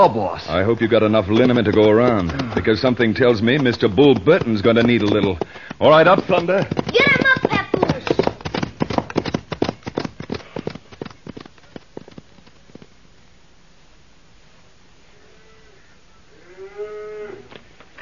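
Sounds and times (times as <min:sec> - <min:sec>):
speech: 0:00.0 - 0:07.4
clatter of hooves: 0:00.5 - 0:12.9
cattle mooing: 0:15.1 - 0:17.6.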